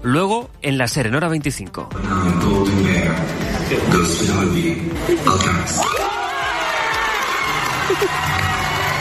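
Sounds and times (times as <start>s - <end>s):
speech: 0.0s - 6.2s, 7.9s - 8.7s
crowd of villagers cheering and shouting: 5.0s - 9.0s.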